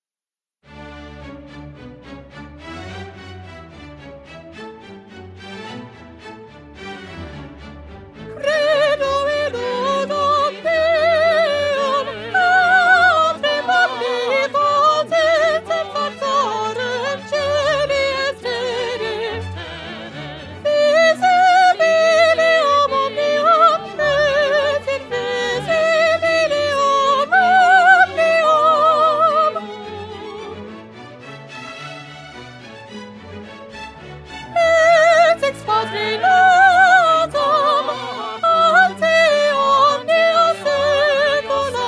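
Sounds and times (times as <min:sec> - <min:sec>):
soprano singing: 0:08.2 - 0:30.8, 0:34.4 - 0:41.8.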